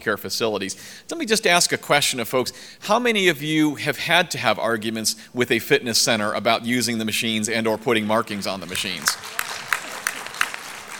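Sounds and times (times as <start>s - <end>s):
speech: 0.0s - 9.5s
noise: 0.0s - 10.9s
scattered audience applause: 8.2s - 10.9s.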